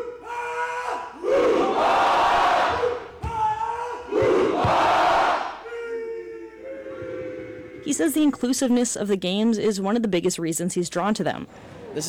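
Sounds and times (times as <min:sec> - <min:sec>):
crowd cheering at games: 0:00.0 - 0:07.9
speech: 0:08.0 - 0:12.0.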